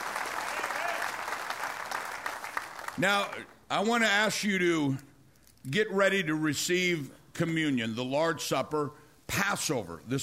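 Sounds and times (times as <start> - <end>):
audience clapping: 0.0 - 3.6
speech: 3.0 - 10.2.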